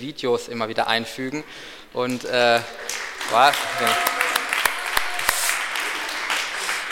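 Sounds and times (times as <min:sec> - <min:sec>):
speech: 0:00.0 - 0:04.2
audience applause at a live stage event: 0:02.6 - 0:06.9.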